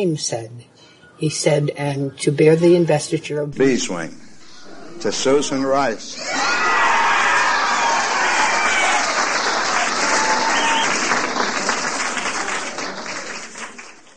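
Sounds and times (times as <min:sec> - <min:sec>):
speech: 0:00.0 - 0:04.2, 0:05.0 - 0:06.4
crowd shouting: 0:06.1 - 0:11.3
crowd applause: 0:06.3 - 0:14.1.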